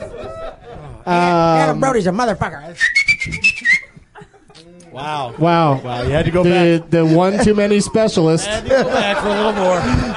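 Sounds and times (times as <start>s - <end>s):
laughter: 0.0s - 1.5s, 3.3s - 10.1s
speech: 1.0s - 3.8s, 5.0s - 10.1s
person whistling a short high note: 2.8s - 4.0s.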